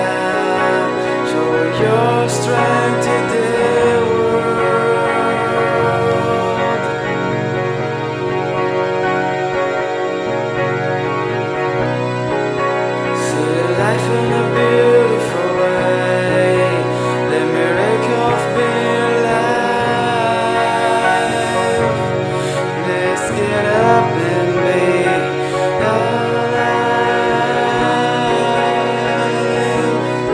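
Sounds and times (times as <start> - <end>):
string instruments playing: 0.0 - 30.3.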